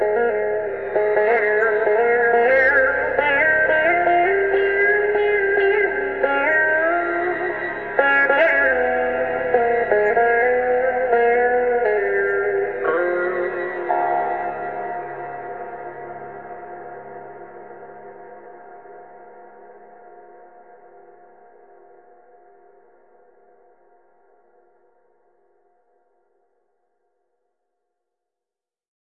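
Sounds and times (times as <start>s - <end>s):
Line 6 sitar playing metal: 0.0s - 18.1s.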